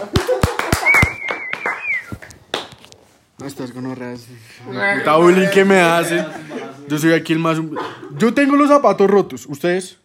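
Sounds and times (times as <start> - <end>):
small group clapping hands: 0.0 - 3.0
speech: 3.4 - 10.0
laughter: 5.3 - 8.6.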